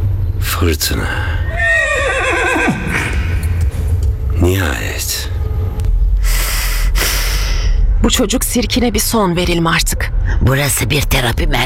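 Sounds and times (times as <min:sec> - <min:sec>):
low rumble: 0:00.0 - 0:11.6
speech: 0:00.6 - 0:01.4, 0:04.5 - 0:05.3, 0:08.1 - 0:11.6
horse whinnying: 0:01.4 - 0:03.4.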